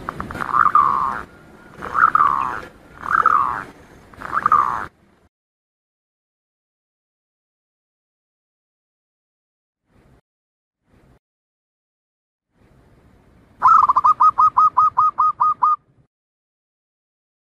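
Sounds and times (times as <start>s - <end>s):
Zebra dove staccato cooing song: 0.3s - 4.9s, 13.6s - 15.8s.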